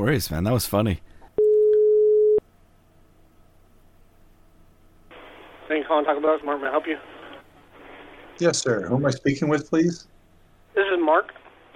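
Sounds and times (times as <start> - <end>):
speech: 0.0 - 1.1, 5.7 - 7.1, 8.4 - 10.1, 10.8 - 11.4
telephone line tone after a hang-up: 1.4 - 2.4.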